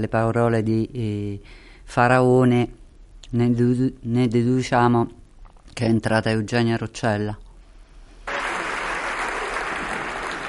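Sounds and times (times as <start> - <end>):
speech: 0.0 - 5.2, 5.8 - 7.4
large crowd applauding in a parliament chamber: 8.3 - 10.4.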